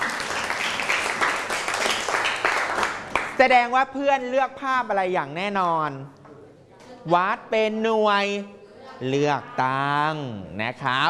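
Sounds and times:
classroom applause: 0:00.0 - 0:03.4
speech: 0:03.4 - 0:06.2, 0:07.0 - 0:11.0.

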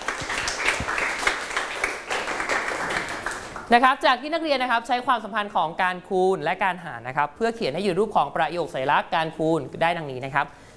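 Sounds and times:
classroom applause: 0:00.0 - 0:03.7
speech: 0:03.7 - 0:10.6.

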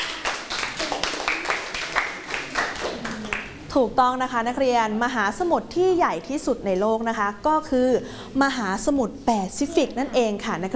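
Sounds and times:
classroom students clapping for a classmate: 0:00.0 - 0:03.6
speech: 0:03.8 - 0:10.7.

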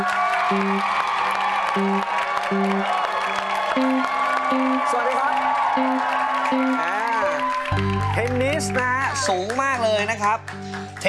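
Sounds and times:
low musical tune with sustained notes: 0:00.0 - 0:01.0, 0:01.7 - 0:03.0, 0:03.7 - 0:05.0, 0:05.6 - 0:10.7
audience applause welcoming a guest: 0:00.0 - 0:11.0
speech: 0:00.5 - 0:01.0, 0:01.8 - 0:03.0, 0:03.8 - 0:07.0, 0:07.7 - 0:11.0.

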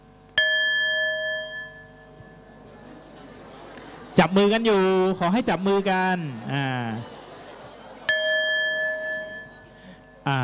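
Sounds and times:
bell rung as a signal: 0:00.4 - 0:02.7, 0:08.1 - 0:10.4
laughter: 0:02.6 - 0:10.0
speech: 0:04.2 - 0:07.2, 0:10.3 - 0:10.4.

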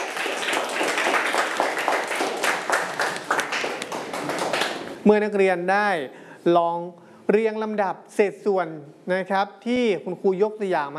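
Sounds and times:
students clapping for themselves: 0:00.0 - 0:05.0
speech: 0:05.0 - 0:10.9.

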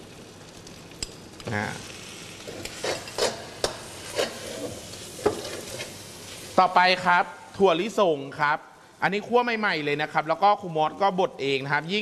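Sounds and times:
dried shrimp sizzling in hot oil in a frying pan: 0:00.0 - 0:08.0
speech: 0:01.5 - 0:02.0, 0:06.6 - 0:12.0
utensil scraping against the pan: 0:02.4 - 0:06.6.

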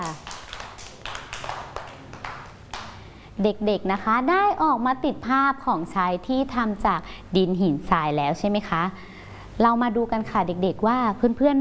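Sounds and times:
group of children clapping together: 0:00.0 - 0:03.0
speech: 0:03.4 - 0:11.5.

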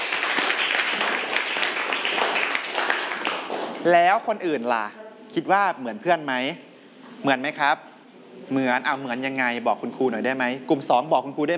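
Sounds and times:
students clapping: 0:00.0 - 0:04.1
speech: 0:03.8 - 0:11.5.

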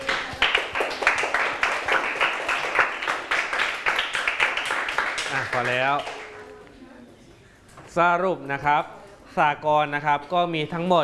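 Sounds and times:
people clapping: 0:00.0 - 0:06.8
speech: 0:05.6 - 0:06.2, 0:08.0 - 0:11.0.

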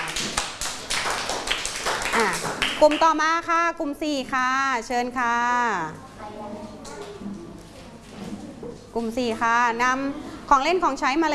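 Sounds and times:
group of children clapping in a classroom: 0:00.0 - 0:03.2
speech: 0:02.8 - 0:06.6, 0:09.0 - 0:11.3.

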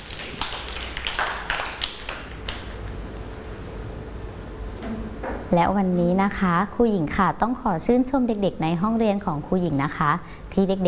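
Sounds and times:
children clapping hands: 0:00.0 - 0:02.8
speech: 0:05.5 - 0:10.8.

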